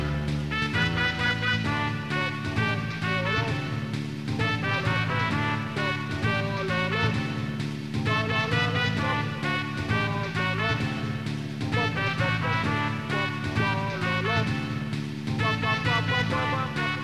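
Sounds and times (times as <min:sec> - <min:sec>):
trumpet: 0:00.0 - 0:17.0.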